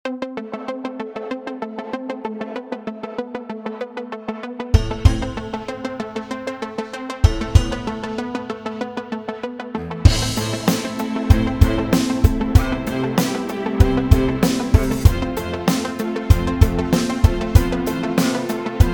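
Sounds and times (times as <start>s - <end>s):
dramatic strings: 4.8s - 18.9s.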